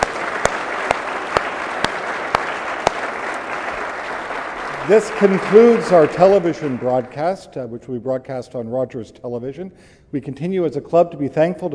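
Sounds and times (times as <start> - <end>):
audience applause: 0.0 - 7.2
speech: 4.9 - 11.7.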